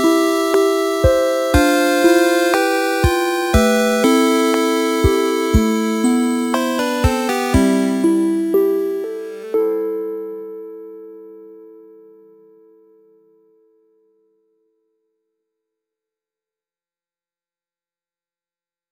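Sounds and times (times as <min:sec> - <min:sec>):
sad moment music: 0:00.0 - 0:12.6.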